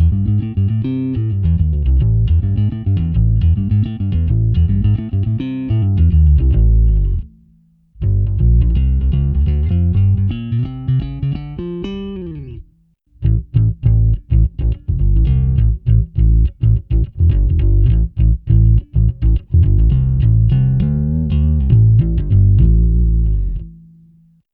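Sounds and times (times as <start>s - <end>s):
bass guitar through SVT amp model on Zoom B3: 0.0s - 24.4s.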